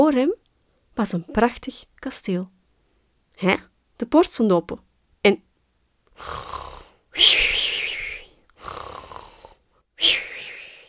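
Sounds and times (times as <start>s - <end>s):
speech: 0.0s - 0.4s, 1.0s - 2.6s, 3.4s - 5.5s, 6.2s - 6.6s, 7.2s - 7.4s
person imitating snoring: 6.2s - 9.6s.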